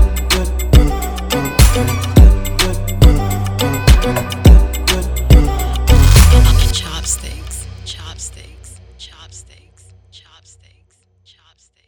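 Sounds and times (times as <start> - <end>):
chill instrumental beats: 0.0 - 8.7.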